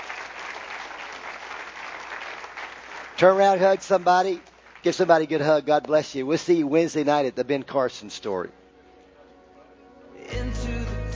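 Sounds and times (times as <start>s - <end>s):
audience applauding: 0.0s - 5.3s
speech: 3.2s - 8.6s.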